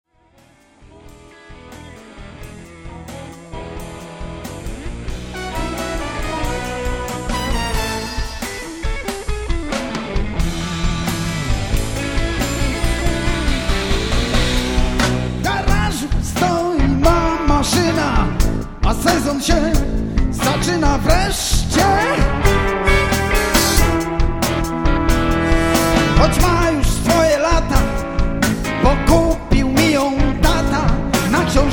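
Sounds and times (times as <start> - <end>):
blues music: 0.2 - 31.7.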